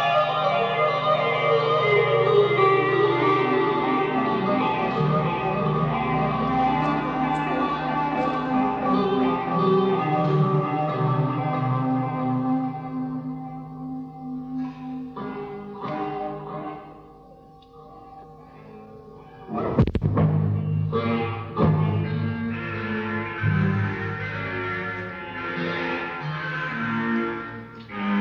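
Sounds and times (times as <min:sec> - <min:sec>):
guitar: 0:00.0 - 0:28.1
organ: 0:00.0 - 0:28.1.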